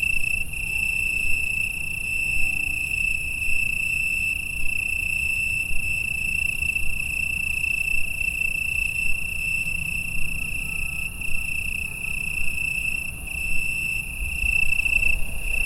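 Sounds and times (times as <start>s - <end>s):
crickets chirping in Italy at 9 pm: 0.0s - 15.6s.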